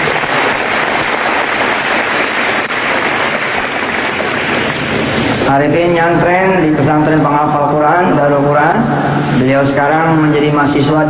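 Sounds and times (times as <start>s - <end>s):
audience applause: 0.0s - 5.0s
speech: 5.6s - 11.0s.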